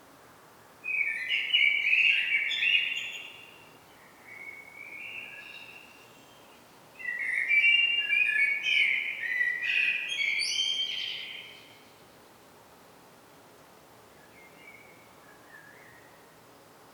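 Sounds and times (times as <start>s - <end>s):
common blackbird Turdus merula song: 0.8s - 12.1s, 14.2s - 16.2s.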